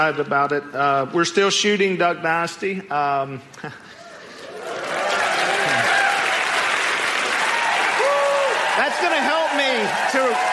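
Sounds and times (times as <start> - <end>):
speech: 0.0 - 4.0
audience applause: 4.4 - 10.5.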